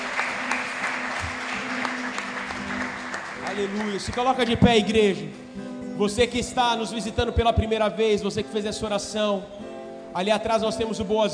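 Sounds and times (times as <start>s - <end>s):
church audience applause: 0.0s - 4.6s
speech: 3.6s - 5.4s, 6.0s - 11.3s.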